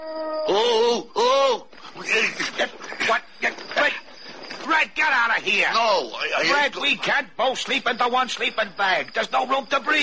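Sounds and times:
wolf howling: 0.0s - 0.9s
speech: 0.5s - 4.0s, 4.8s - 10.0s.

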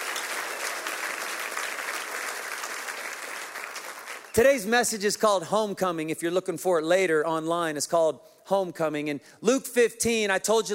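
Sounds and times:
church congregation cheering and applauding for visitors: 0.0s - 5.0s
speech: 4.4s - 10.7s.

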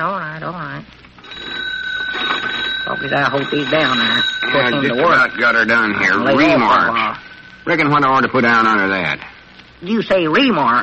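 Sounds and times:
old telephone ringing as a call is placed: 1.2s - 10.2s
speech: 3.0s - 10.8s.

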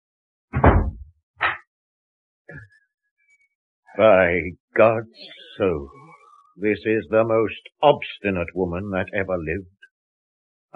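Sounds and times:
heavy booming thuds against a door: 0.6s - 1.0s
speech: 3.9s - 6.0s, 6.6s - 9.8s.

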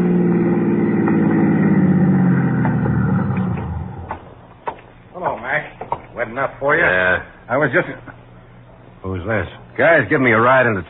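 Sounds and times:
car engine humming as it pulls into a toll plaza: 0.0s - 4.6s
speech: 6.4s - 8.1s, 9.2s - 10.8s.

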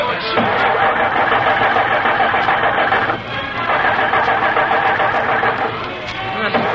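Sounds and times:
car engine grinding and failing to catch on an empty gas tank: 0.2s - 6.7s.

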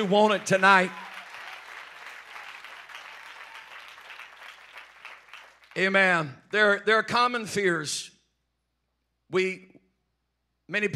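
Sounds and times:
speech: 0.0s - 1.0s, 5.8s - 8.1s, 9.3s - 9.7s, 10.7s - 10.9s
audience clapping: 0.0s - 6.4s.

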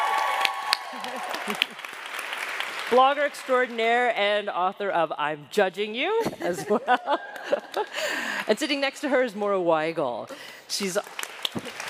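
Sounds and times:
audience clapping for panel guests: 0.0s - 3.8s, 6.9s - 8.5s, 10.4s - 11.8s
speech: 1.0s - 2.0s, 2.9s - 11.7s
laughter: 6.2s - 8.4s.

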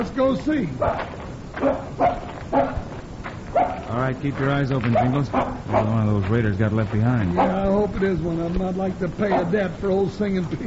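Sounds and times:
speech: 0.0s - 2.8s, 3.9s - 10.6s
hiss: 0.0s - 10.6s
dog barking at bushes: 0.8s - 2.9s, 3.5s - 3.9s, 4.9s - 6.0s, 7.3s - 7.7s, 9.2s - 9.6s.

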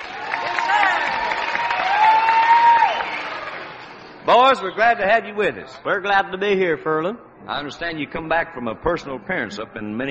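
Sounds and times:
audience applause greeting two young guests at the Grand Ole Opry: 0.0s - 4.2s
speech: 4.3s - 10.0s.

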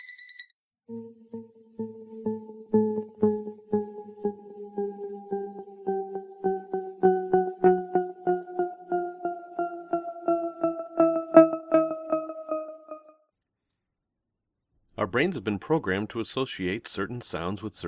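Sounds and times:
layered electronic tones gliding downward: 1.3s - 13.1s
speech: 15.2s - 17.8s.

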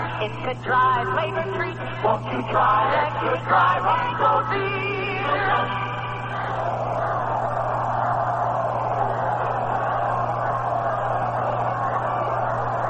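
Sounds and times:
low constant hum: 0.0s - 12.8s
speech: 0.2s - 5.8s
large ballpark crowd murmuring during seventh inning stretch: 6.0s - 12.8s.

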